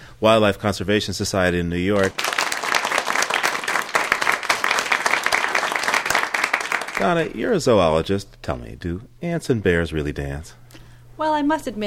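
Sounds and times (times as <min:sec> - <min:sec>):
speech: 0:00.2 - 0:02.3, 0:07.0 - 0:10.6, 0:11.2 - 0:11.8
audience applauding to welcome a wildlife curator onto a show: 0:02.0 - 0:07.2.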